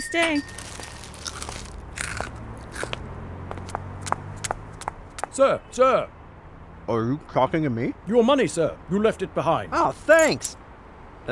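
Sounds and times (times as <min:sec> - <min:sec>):
speech: 0:00.0 - 0:00.6, 0:05.4 - 0:06.2, 0:06.9 - 0:10.6
crunching on crunchy broccoli clumps: 0:00.5 - 0:03.0.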